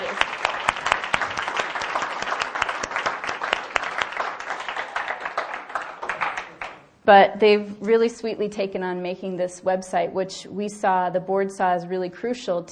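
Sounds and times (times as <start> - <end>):
audience applause: 0.0 - 6.8
speech: 7.1 - 12.7.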